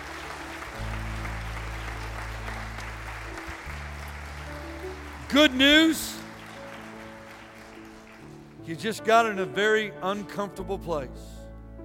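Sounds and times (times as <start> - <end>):
audience round of applause: 0.0 - 8.6
speech: 5.3 - 6.2, 8.7 - 11.4.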